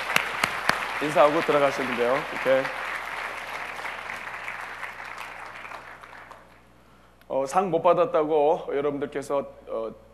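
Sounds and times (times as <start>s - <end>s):
audience applause: 0.0s - 6.6s
speech: 1.0s - 2.8s, 7.4s - 10.1s.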